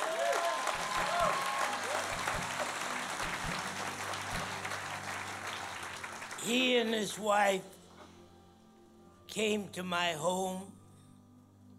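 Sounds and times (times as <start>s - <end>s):
audience applause: 0.0s - 6.7s
speech: 6.4s - 7.8s, 9.3s - 10.8s.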